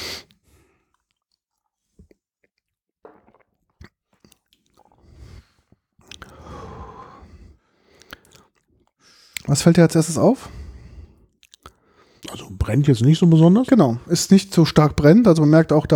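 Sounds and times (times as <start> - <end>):
faint mouth clicks during a vodka tasting: 6.1 - 6.4, 8.0 - 8.4
long slow breathy exhale after a sip of vodka: 6.3 - 8.3, 10.5 - 12.2
speech: 9.5 - 10.6, 12.7 - 15.9.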